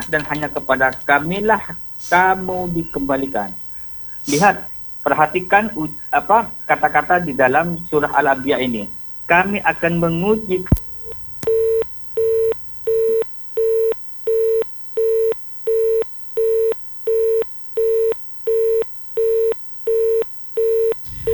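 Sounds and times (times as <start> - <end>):
speech: 0.1 - 3.6, 4.2 - 10.8
phone busy tone after a dropped call during a radio interview: 10.1 - 21.3
low rumble: 10.6 - 12.9, 21.0 - 21.3.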